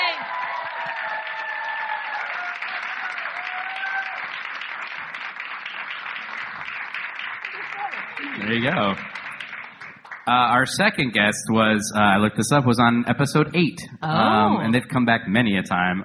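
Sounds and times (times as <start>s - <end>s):
audience clapping as a guest is introduced on stage: 0.0s - 11.2s
audience whistles and whoops: 0.2s - 4.2s
speech: 8.5s - 9.2s, 10.3s - 16.0s.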